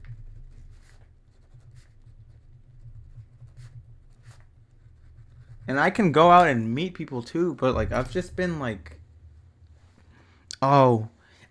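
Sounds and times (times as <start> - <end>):
pen writing in a notebook: 0.0 - 6.6
low steady hum: 0.0 - 11.4
speech: 5.7 - 9.0, 10.6 - 11.2.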